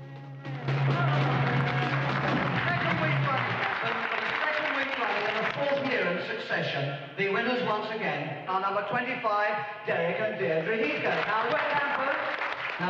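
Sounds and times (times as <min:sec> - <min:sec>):
redcoat clapping at the microphone: 0:00.5 - 0:05.9, 0:10.9 - 0:12.8
speech: 0:06.3 - 0:12.2.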